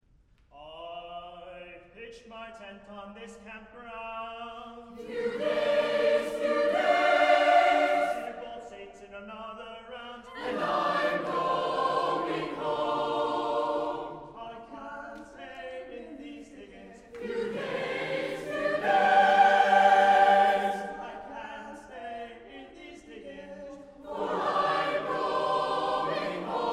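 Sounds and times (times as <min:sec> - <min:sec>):
choir singing: 0:04.8 - 0:09.0, 0:10.1 - 0:26.7.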